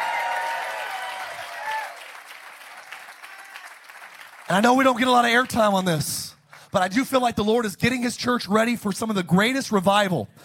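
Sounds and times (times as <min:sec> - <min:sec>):
audience applause: 0:00.0 - 0:04.6
people cheering: 0:00.0 - 0:05.0
speech: 0:04.5 - 0:10.4.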